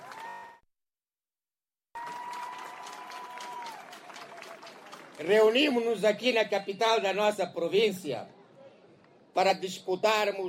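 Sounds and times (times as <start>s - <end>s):
crowd applauding loudly: 0.0s - 0.6s, 2.0s - 5.3s
speech: 5.2s - 8.4s, 9.4s - 10.4s.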